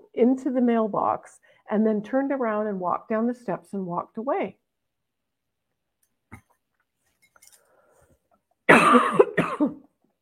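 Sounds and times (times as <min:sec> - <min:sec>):
speech: 0:00.2 - 0:04.6, 0:08.9 - 0:09.7
harsh raspy cough: 0:08.7 - 0:09.9.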